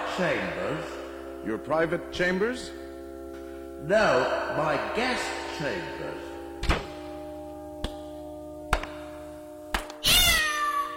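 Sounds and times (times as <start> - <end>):
speech: 0.2 - 2.8, 3.8 - 6.3
cat yowling after its tail is stepped on: 10.0 - 10.9.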